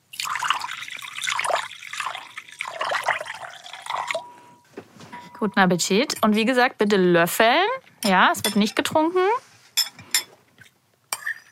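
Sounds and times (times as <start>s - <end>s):
thick soup poured into a deep plate: 0.1s - 4.4s
speech: 5.4s - 9.5s.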